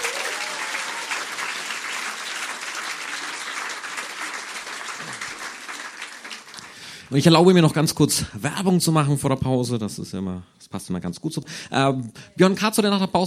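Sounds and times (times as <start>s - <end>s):
audience applause: 0.0s - 7.6s
speech: 7.1s - 13.2s.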